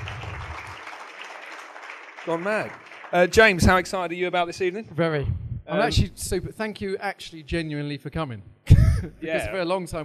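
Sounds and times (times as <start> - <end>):
audience applause: 0.0 - 4.4
speech: 2.2 - 10.0.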